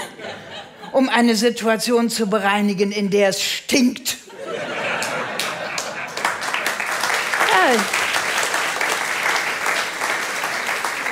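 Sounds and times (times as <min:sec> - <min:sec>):
laughter: 0:00.0 - 0:01.0, 0:04.3 - 0:08.0
speech: 0:00.9 - 0:04.2, 0:07.7 - 0:07.9
audience applause: 0:05.0 - 0:11.1.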